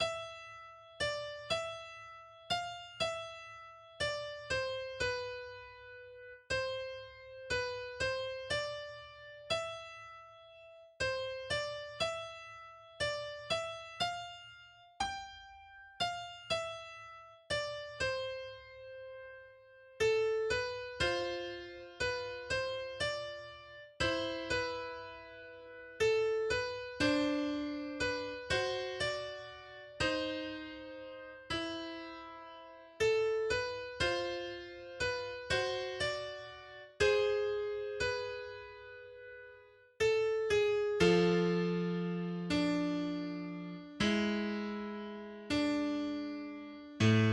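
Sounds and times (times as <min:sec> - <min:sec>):
piano duet: 0:00.0 - 0:47.3.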